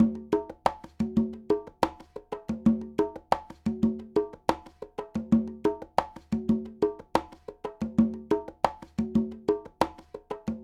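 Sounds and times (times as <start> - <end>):
conga Latin percussion: 0.0 - 10.6.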